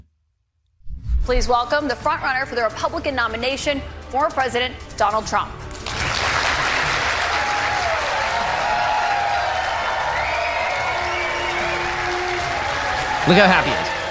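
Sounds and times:
speech: 1.3 - 5.6, 13.3 - 13.9
standing ovation applause for Donald Trump at a Republican primary town hall: 5.8 - 14.0.

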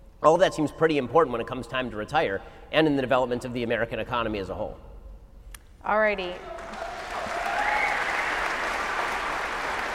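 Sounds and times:
speech: 0.2 - 4.9, 5.8 - 6.5
audience applause: 6.4 - 9.9.

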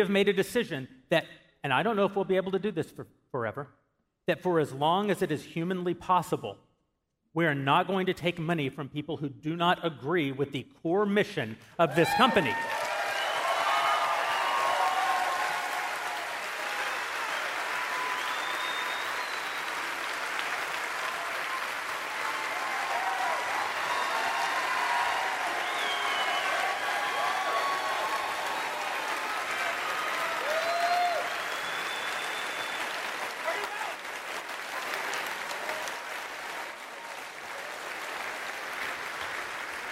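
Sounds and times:
speech: 0.0 - 6.7, 7.4 - 12.8
crowd applause: 11.9 - 39.9.

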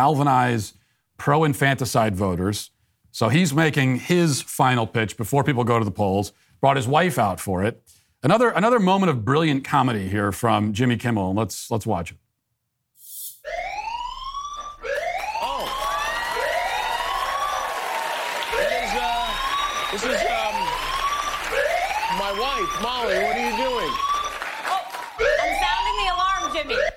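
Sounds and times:
speech: 0.0 - 12.2, 20.0 - 20.2
alarm siren whooping: 13.4 - 26.9
rough crowd-like noise: 15.4 - 25.6.

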